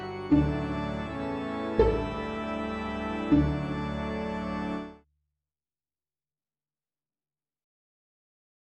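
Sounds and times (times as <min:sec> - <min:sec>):
organ piece: 0:00.0 - 0:05.0.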